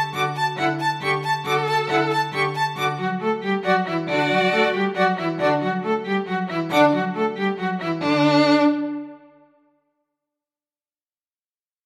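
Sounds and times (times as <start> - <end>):
two violins and bass playing a dance: 0.0 - 9.4.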